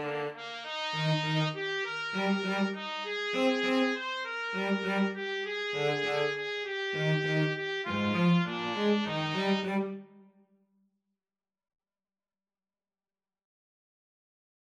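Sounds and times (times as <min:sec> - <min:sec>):
cello: 0:00.0 - 0:10.2
trumpet: 0:00.0 - 0:10.4.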